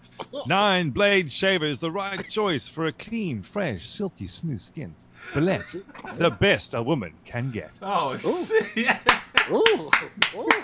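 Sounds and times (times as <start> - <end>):
speech: 0.3 - 10.6
laughter: 5.2 - 6.6, 8.2 - 10.6
sharp hand claps: 9.0 - 10.6.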